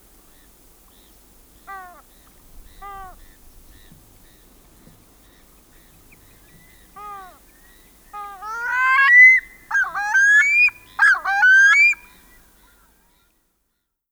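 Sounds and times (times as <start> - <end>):
Pacific loon yelps and wails: 8.5 - 12.0.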